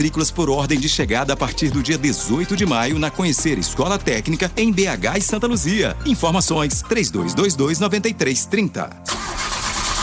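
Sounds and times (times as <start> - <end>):
speech: 0.0 - 9.4
car engine cranking and struggling to start: 9.0 - 10.0.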